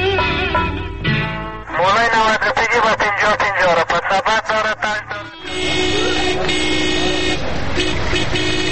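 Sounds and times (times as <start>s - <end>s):
low rumble of road noise: 0.1s - 8.7s
car horns honking: 5.0s - 8.7s.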